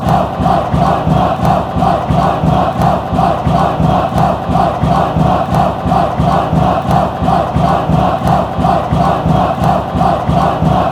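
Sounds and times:
chanting: 0.0s - 10.8s.

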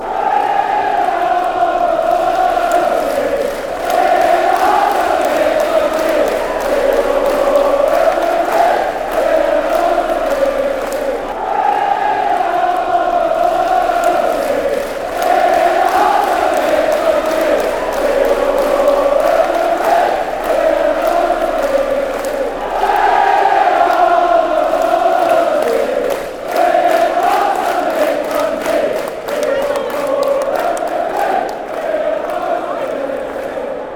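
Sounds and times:
fans chanting: 0.0s - 33.9s.

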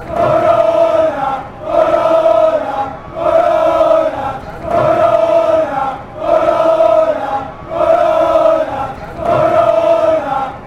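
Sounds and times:
chanting: 0.0s - 10.6s.

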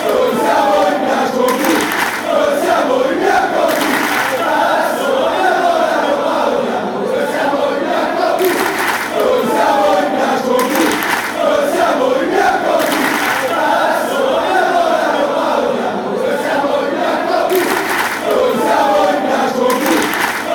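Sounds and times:
football crowd chanting: 0.0s - 20.5s.

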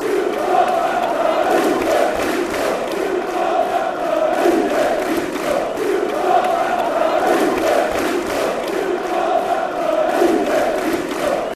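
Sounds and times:
chanting: 0.0s - 11.5s.

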